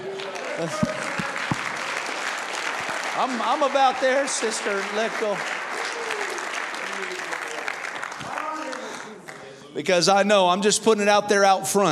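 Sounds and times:
audience clapping hands: 0:00.0 - 0:09.7
speech: 0:00.6 - 0:01.0, 0:03.2 - 0:05.6, 0:09.8 - 0:11.9.

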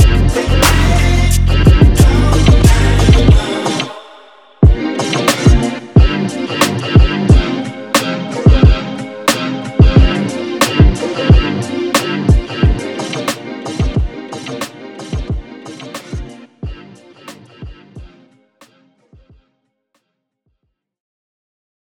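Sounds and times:
rocksteady groove: 0:00.0 - 0:03.9, 0:04.6 - 0:18.1.

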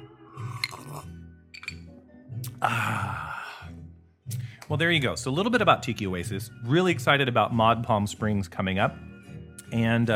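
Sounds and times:
person sipping a cocktail: 0:00.3 - 0:03.5
speech: 0:02.6 - 0:03.4, 0:04.7 - 0:09.1, 0:09.7 - 0:10.1.

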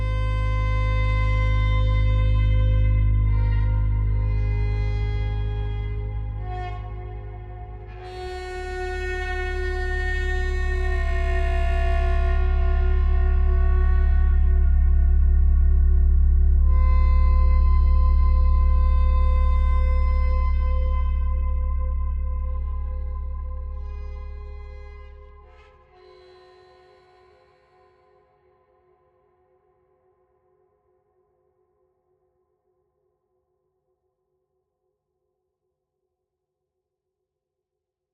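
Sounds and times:
gated drones: 0:00.0 - 0:26.0.

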